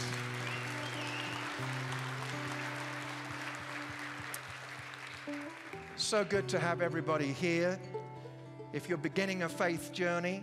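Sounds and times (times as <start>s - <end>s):
crowd applauding: 0.0s - 7.0s
speech: 6.0s - 7.9s, 8.7s - 10.4s.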